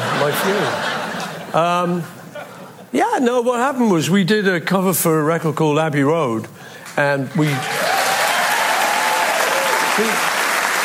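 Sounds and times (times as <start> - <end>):
laughter: 0.0 - 2.9
speech: 0.2 - 2.2, 2.9 - 7.8
audience applause: 7.5 - 10.8.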